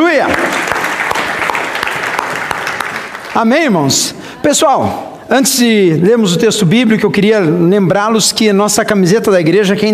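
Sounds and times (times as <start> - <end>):
audience applauding: 0.0 - 3.6
speech: 0.1 - 0.7, 3.4 - 9.9.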